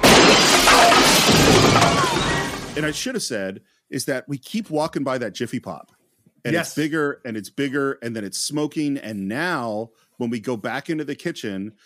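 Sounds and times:
chair smashing through glass patio door: 0:00.0 - 0:03.0
speech: 0:02.8 - 0:11.8.

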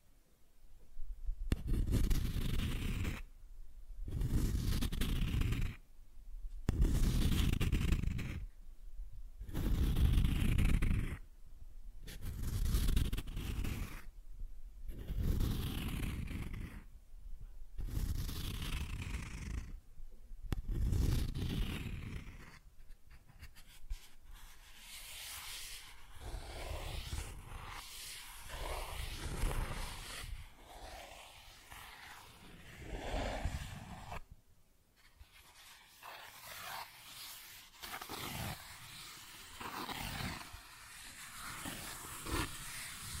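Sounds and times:
cardboard being scratched and torn: 0:01.6 - 0:03.2, 0:04.1 - 0:05.8, 0:06.7 - 0:08.4, 0:09.4 - 0:11.2, 0:12.1 - 0:14.1, 0:14.9 - 0:16.8, 0:17.8 - 0:19.8, 0:20.6 - 0:34.3, 0:35.0 - 0:43.1.

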